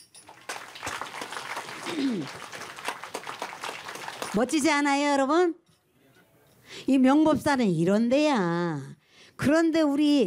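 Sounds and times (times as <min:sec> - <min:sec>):
audience applause: 0:00.2 - 0:04.7
speech: 0:01.9 - 0:02.6, 0:04.4 - 0:05.6, 0:06.9 - 0:10.2.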